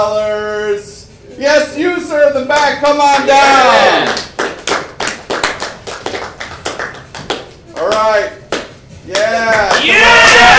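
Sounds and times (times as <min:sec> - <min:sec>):
speech: 0:00.0 - 0:04.2
audience clapping in a steady rhythmic beat: 0:04.0 - 0:10.4.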